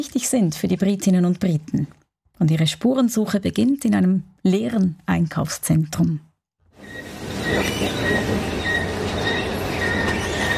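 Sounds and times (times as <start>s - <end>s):
speech: 0.0s - 7.9s
squeaking escalator in an empty shopping centre: 6.8s - 10.5s.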